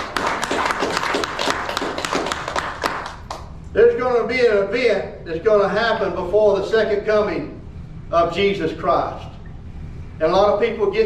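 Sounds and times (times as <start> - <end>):
audience hand clapping: 0.0 - 3.5
speech: 3.7 - 9.3, 10.2 - 11.0.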